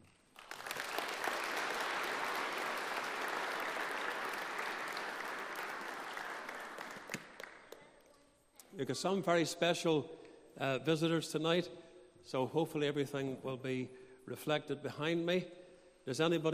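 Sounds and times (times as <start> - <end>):
audience applause for children: 0.3 - 7.8
speech: 8.8 - 16.5.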